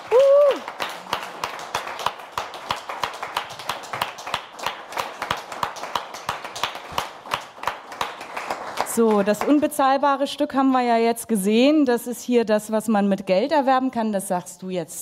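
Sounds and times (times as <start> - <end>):
thunderous applause: 0.0 - 9.5
speech: 9.0 - 15.0.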